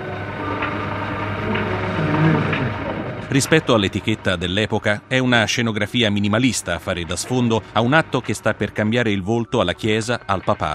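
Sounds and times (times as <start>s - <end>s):
steady mechanical machinery hum: 0.0s - 10.7s
speech: 3.3s - 10.7s.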